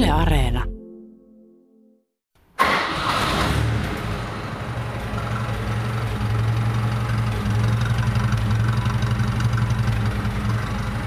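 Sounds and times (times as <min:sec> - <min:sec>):
speech: 0:00.1 - 0:00.7
carbureted engine starting and idling: 0:02.6 - 0:10.9.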